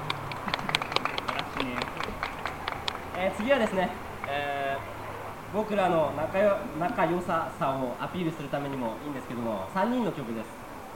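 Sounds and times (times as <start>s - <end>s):
audience applause for the leader: 0.0s - 4.4s
speech: 3.2s - 4.6s, 5.5s - 10.9s.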